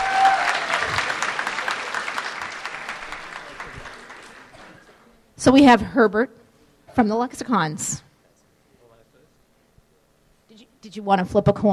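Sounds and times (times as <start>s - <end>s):
crowd applauding for spelling bee contestants: 0.0s - 5.0s
speech: 5.4s - 6.4s, 7.0s - 8.0s, 10.8s - 11.7s.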